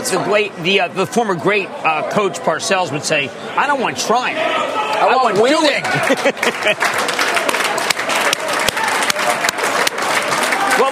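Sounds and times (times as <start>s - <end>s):
speech: 0.1s - 7.2s
applause: 5.0s - 10.9s.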